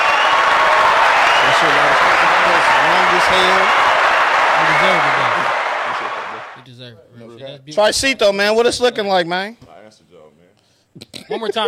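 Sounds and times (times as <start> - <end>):
long applause: 0.0 - 6.6
speech: 1.6 - 3.8, 4.6 - 5.4, 7.6 - 9.6, 11.0 - 11.6.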